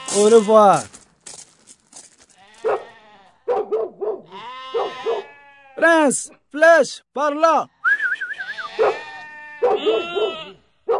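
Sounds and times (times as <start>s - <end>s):
speech: 0.1s - 0.9s, 5.8s - 7.8s
lamb bleating: 2.4s - 3.4s, 4.3s - 5.8s, 8.4s - 10.6s.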